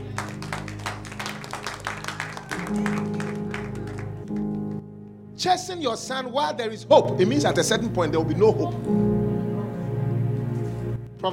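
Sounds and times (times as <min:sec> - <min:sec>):
audience clapping: 0:00.0 - 0:04.9
sustained low musical drone or organ chords: 0:00.0 - 0:11.3
speech: 0:02.7 - 0:03.1, 0:05.4 - 0:09.1.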